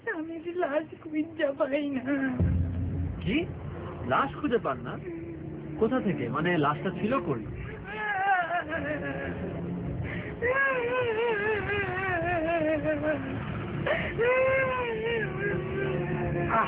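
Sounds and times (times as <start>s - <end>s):
speech: 0.4s - 5.2s, 5.8s - 7.6s, 8.7s - 9.5s, 10.4s - 11.9s, 12.8s - 14.9s, 16.4s - 16.6s
person crying and wailing in distress: 7.6s - 9.7s, 10.4s - 16.6s.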